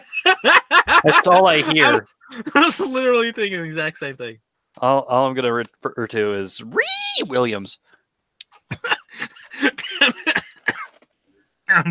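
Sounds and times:
laughter: 0.0 - 4.3, 8.6 - 10.7
speech: 0.4 - 7.9, 8.7 - 10.4
coughing fit of harsh raspy coughs: 1.0 - 2.9, 8.6 - 10.9.

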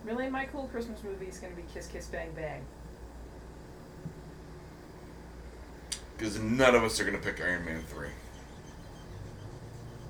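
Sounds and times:
speech: 0.1 - 2.9, 6.2 - 8.2
noisy car engine outside: 8.2 - 10.0.

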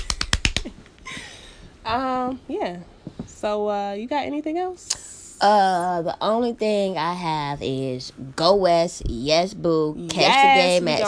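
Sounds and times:
hand claps: 0.0 - 0.8
quiet hiss: 0.0 - 11.0
speech: 1.9 - 11.0.

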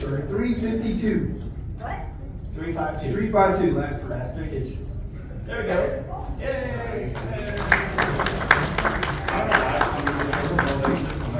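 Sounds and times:
speech: 0.2 - 8.4
person clapping: 7.6 - 11.3.

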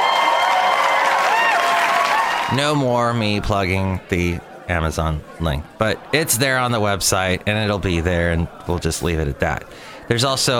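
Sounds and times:
applause sound effect: 0.0 - 2.5
speech: 2.5 - 10.5.

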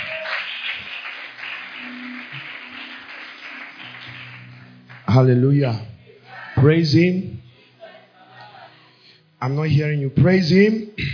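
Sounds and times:
crowd clapping: 0.0 - 5.8
speech: 5.2 - 5.9, 6.6 - 7.4, 9.4 - 11.1.

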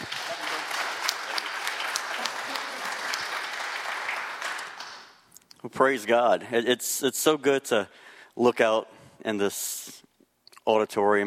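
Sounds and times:
audience applause for a preacher at a morning church service: 0.0 - 5.2
speech: 5.6 - 10.0, 10.6 - 11.2.

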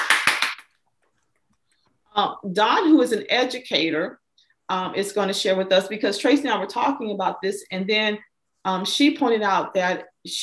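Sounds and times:
hand clap: 0.0 - 0.8
speech: 2.2 - 10.4.

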